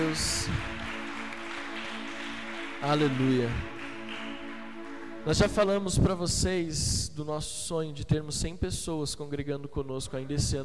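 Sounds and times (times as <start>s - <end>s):
audience applause: 0.0s - 5.2s
speech: 0.1s - 0.7s, 2.8s - 3.7s, 5.2s - 10.6s.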